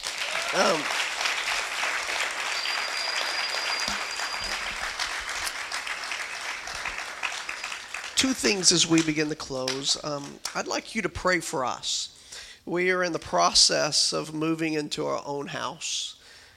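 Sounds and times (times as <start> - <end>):
audience hand clapping: 0.0 - 10.5
speech: 0.5 - 1.0, 8.2 - 16.2.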